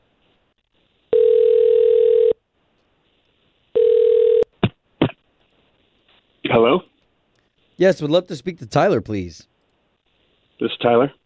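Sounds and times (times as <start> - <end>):
telephone call ringback tones: 1.1 - 2.4, 3.8 - 4.5
speech: 6.6 - 6.9, 7.8 - 9.5, 10.6 - 11.2.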